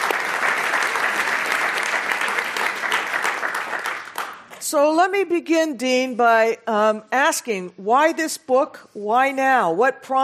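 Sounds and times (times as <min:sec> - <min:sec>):
audience applause welcoming a dean: 0:00.0 - 0:04.5
speech: 0:04.7 - 0:10.2.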